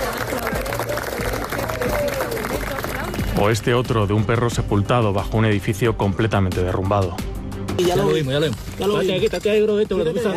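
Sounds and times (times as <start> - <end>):
overlapping voices: 0.0 - 3.4
small group clapping: 0.0 - 3.6
speech: 3.4 - 10.3.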